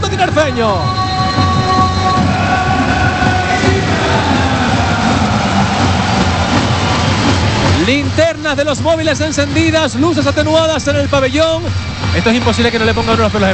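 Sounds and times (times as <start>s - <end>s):
arena crowd welcoming home team: 0.0s - 13.5s
speech: 0.2s - 1.0s, 7.8s - 13.5s.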